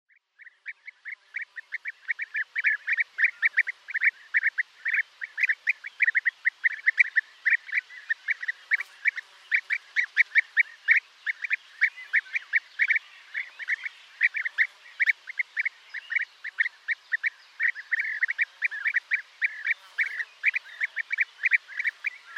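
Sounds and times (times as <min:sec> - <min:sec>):
European bee-eater flock calling: 0:00.4 - 0:22.3.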